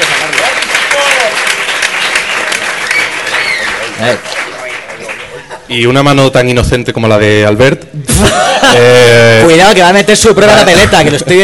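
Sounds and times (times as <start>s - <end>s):
live audience applause and cheering for a group of girls: 0.0s - 5.7s
speech: 4.0s - 4.4s, 5.7s - 11.4s
laughter: 8.1s - 9.3s.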